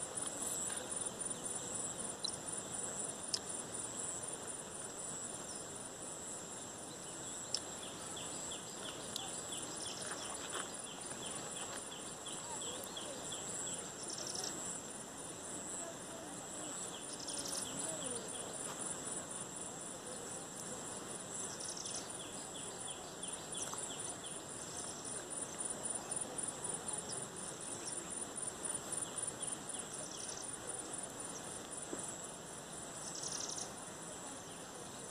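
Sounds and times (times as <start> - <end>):
insect chirring at Bhatangpadar Lake, Odisha: 0.0 - 15.0, 21.3 - 33.9
faint brief brighter chirps: 0.1 - 4.2, 6.8 - 14.8, 15.4 - 35.0.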